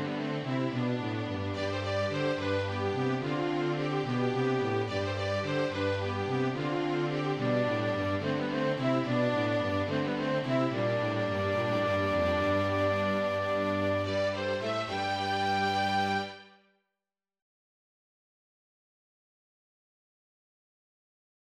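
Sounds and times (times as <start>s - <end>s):
ensemble playing a waltz: 0.0s - 16.4s.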